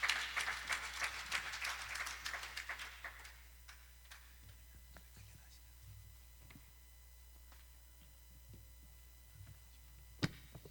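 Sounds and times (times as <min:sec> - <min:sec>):
church congregation clapping for a pastor at a morning service: 0:00.0 - 0:04.4.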